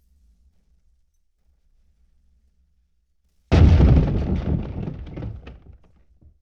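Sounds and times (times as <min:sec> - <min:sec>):
explosion: 0:03.5 - 0:05.8.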